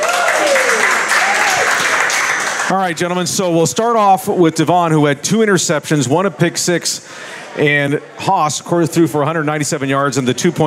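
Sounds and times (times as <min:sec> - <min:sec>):
audience applause welcoming a high school linebacker and quarterback at a football coaches show: 0:00.0 - 0:02.8
speech: 0:02.7 - 0:10.6.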